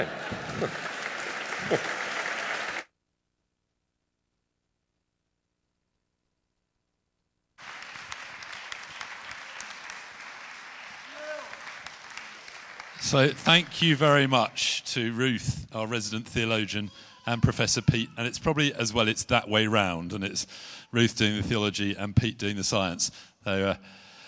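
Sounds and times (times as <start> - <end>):
speech: 0.0 - 0.9, 1.6 - 2.0, 13.1 - 24.0
rapturous applause: 0.0 - 2.9, 7.6 - 15.3.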